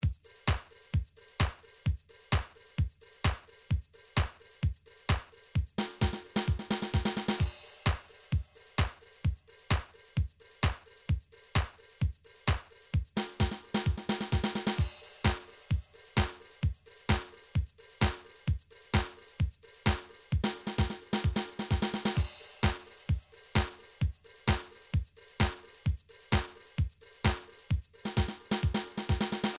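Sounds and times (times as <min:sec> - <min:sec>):
MIDI techno drum beat: 0:00.0 - 0:29.5.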